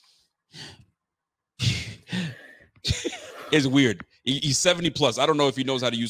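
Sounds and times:
person imitating upset heavy breathing into a microphone: 0:00.5 - 0:00.9, 0:01.6 - 0:03.6
speech: 0:03.5 - 0:06.0.

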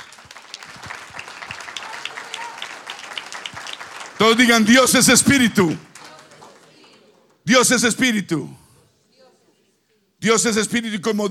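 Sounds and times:
audience applause: 0:00.0 - 0:07.3
speech: 0:04.2 - 0:05.9, 0:07.6 - 0:08.6, 0:10.2 - 0:11.2.

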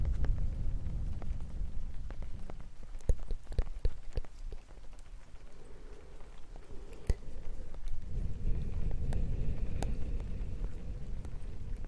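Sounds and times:
low breathy rumble: 0:00.0 - 0:03.0, 0:04.7 - 0:11.8
rain: 0:00.0 - 0:11.8
gentle sharp irregular taps: 0:02.4 - 0:05.2.

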